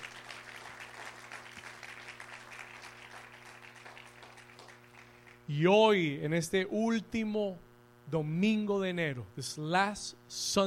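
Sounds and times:
applause: 0.0 - 5.5
speech: 5.5 - 10.6.

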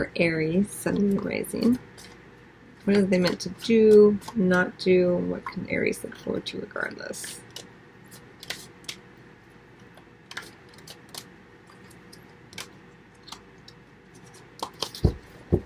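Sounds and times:
speech: 0.0 - 2.1, 2.8 - 7.7
new sticky tarot cards being handled and drawn: 7.3 - 9.0, 9.8 - 15.2.

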